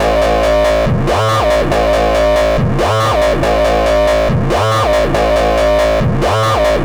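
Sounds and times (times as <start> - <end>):
dubstep bassline at 140 BPM: 0.0 - 6.8.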